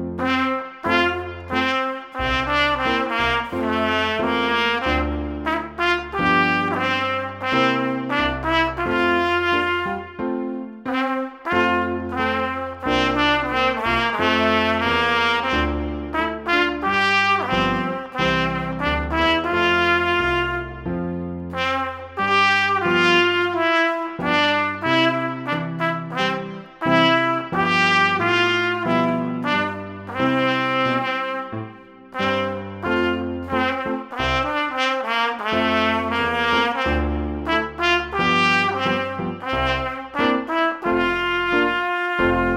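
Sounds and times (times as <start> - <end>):
trumpet march: 0.2 - 42.5.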